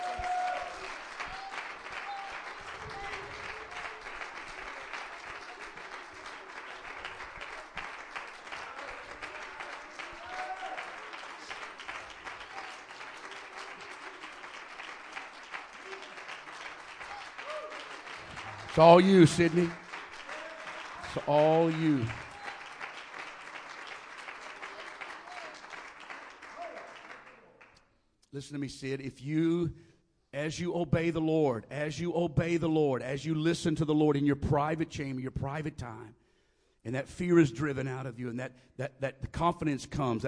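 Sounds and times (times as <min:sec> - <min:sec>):
audience clapping hands: 0:00.0 - 0:27.9
speech: 0:18.8 - 0:19.8, 0:21.2 - 0:22.2, 0:28.4 - 0:36.2, 0:36.8 - 0:40.2.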